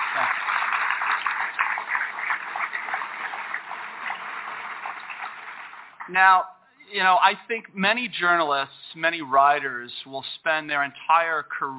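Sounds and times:
audience applause: 0:00.0 - 0:06.1
speech: 0:06.1 - 0:11.7.

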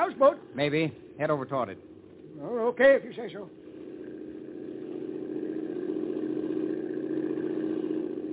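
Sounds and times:
motorboat engine running steadily: 0:00.0 - 0:08.3
speech: 0:00.2 - 0:03.7.

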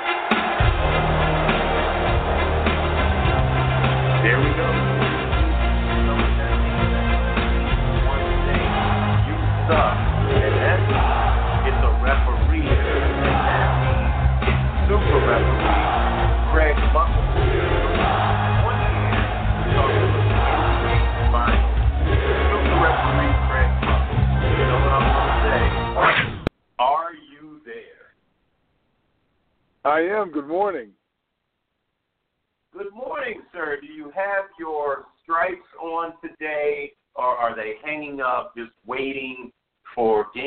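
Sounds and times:
podcast guest intro music with a steady beat: 0:00.2 - 0:26.0
speech: 0:30.1 - 0:31.0, 0:33.6 - 0:40.4.

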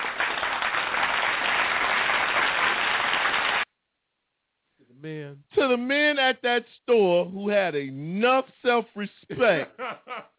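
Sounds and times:
crowd applause: 0:00.0 - 0:03.7
speech: 0:05.0 - 0:10.3
laughter: 0:09.3 - 0:10.3.

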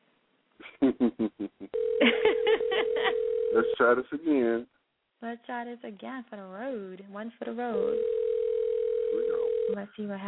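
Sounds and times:
speech: 0:00.8 - 0:01.6, 0:03.8 - 0:08.2, 0:09.1 - 0:10.2
telephone line tone: 0:01.8 - 0:03.8, 0:07.8 - 0:09.8.

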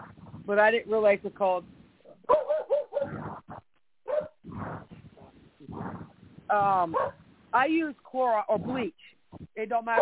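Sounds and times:
speech: 0:00.5 - 0:02.4, 0:06.5 - 0:10.0
dog barking: 0:02.3 - 0:03.2, 0:04.1 - 0:04.8, 0:06.9 - 0:07.2.

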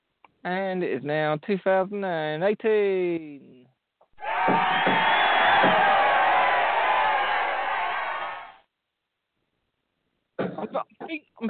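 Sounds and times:
speech: 0:00.4 - 0:03.6, 0:10.6 - 0:11.4
crowd cheering and whooping at the new year: 0:04.2 - 0:08.6.

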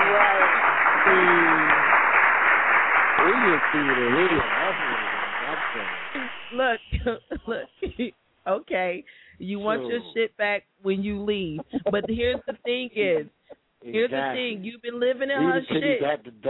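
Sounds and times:
laughter: 0:00.0 - 0:02.0, 0:03.2 - 0:08.1, 0:09.6 - 0:10.2, 0:11.5 - 0:13.3, 0:15.4 - 0:16.4
round of applause: 0:00.0 - 0:07.2, 0:15.4 - 0:16.2
speech: 0:03.4 - 0:16.4.

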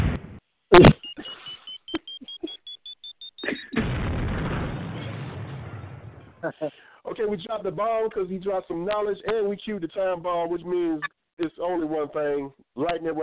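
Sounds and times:
speech: 0:00.7 - 0:01.0, 0:06.5 - 0:13.2
time bomb explosion sound effect: 0:03.8 - 0:06.4.

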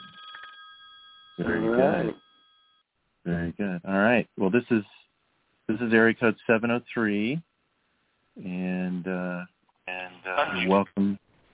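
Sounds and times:
telephone ringing: 0:00.0 - 0:02.8
speech: 0:01.4 - 0:02.2, 0:03.2 - 0:05.0, 0:05.7 - 0:07.5, 0:08.4 - 0:11.2.

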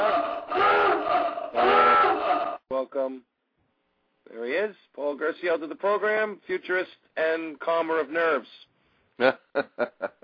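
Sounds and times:
submarine horn sound effect: 0:00.0 - 0:02.6
speech: 0:04.6 - 0:10.2.

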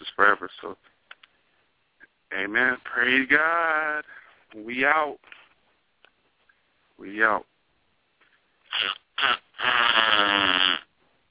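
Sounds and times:
speech: 0:00.2 - 0:00.9, 0:02.3 - 0:05.4, 0:07.0 - 0:07.5
fart: 0:08.7 - 0:10.9.

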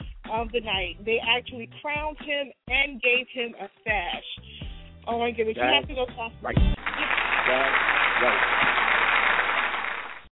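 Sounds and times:
speech: 0:00.4 - 0:09.0
audience applause: 0:06.8 - 0:10.3.

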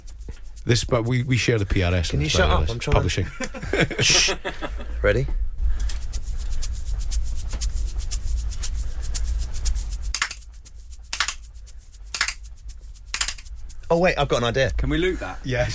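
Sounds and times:
salt packet being shaken: 0:00.0 - 0:02.0, 0:05.8 - 0:14.0
speech: 0:00.7 - 0:05.4, 0:13.9 - 0:15.7
laughter: 0:03.2 - 0:05.0.

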